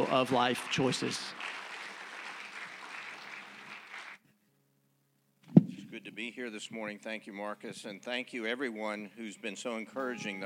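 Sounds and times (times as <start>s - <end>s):
speech: 0.0s - 1.5s, 6.0s - 10.4s
audience applause: 0.0s - 4.2s.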